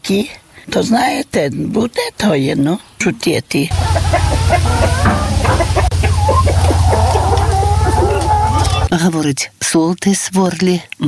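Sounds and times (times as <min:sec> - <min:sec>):
speech: 0:00.1 - 0:03.9, 0:08.9 - 0:11.0
crowd of chickens clucking and squawking: 0:03.7 - 0:08.9
steady low droning hum: 0:03.7 - 0:08.9.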